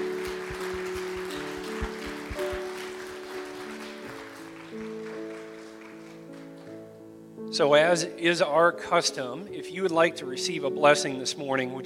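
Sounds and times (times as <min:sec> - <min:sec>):
sustained organ-like chords: 0:00.0 - 0:03.5
crowd clapping: 0:00.0 - 0:06.8
speech: 0:07.6 - 0:11.8.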